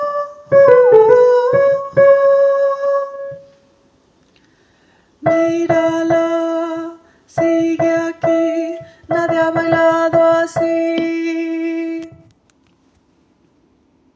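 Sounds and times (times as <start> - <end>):
tenor singing: 0.0 - 3.4, 5.2 - 12.2.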